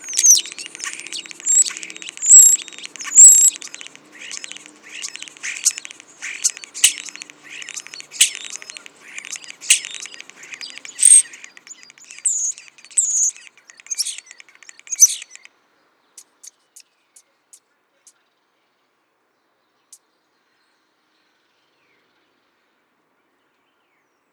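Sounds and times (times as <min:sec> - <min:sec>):
common starling singing: 0:00.0 - 0:15.5.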